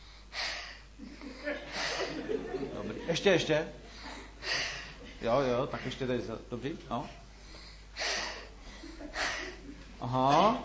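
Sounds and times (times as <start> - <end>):
deep breathing during a listening check for measles: 0.0 - 2.2, 3.8 - 5.1, 7.2 - 9.7
laughter: 1.0 - 5.5, 8.5 - 10.0
speech: 3.1 - 3.8, 5.2 - 7.2, 10.0 - 10.6.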